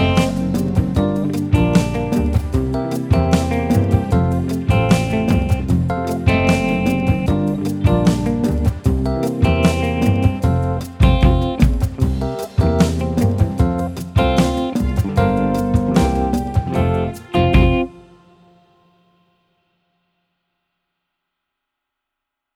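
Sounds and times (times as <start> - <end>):
piano in a calypso jazz backing track: 0.0 - 18.9
trombone in a calypso jazz backing track: 14.3 - 18.2
alto saxophone in a calypso jazz backing track: 14.9 - 18.8.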